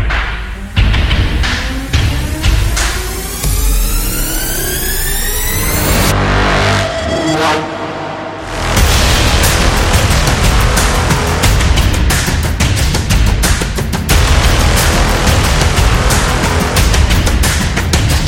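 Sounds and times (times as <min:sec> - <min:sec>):
epic opening music: 0:00.1 - 0:13.4, 0:14.1 - 0:18.2.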